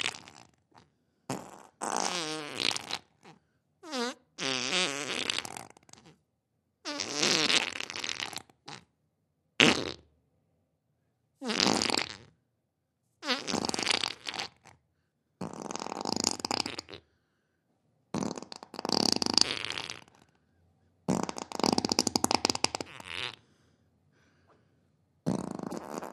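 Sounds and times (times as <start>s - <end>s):
human fart: 0.0s - 6.2s, 6.8s - 8.9s, 9.6s - 10.1s, 11.4s - 12.3s, 13.2s - 14.8s, 15.4s - 17.0s, 18.1s - 20.3s, 21.1s - 23.4s, 25.2s - 26.1s.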